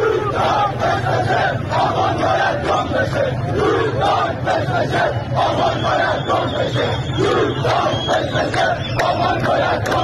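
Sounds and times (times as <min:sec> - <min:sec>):
protest crowd chanting slogans: 0:00.0 - 0:10.0.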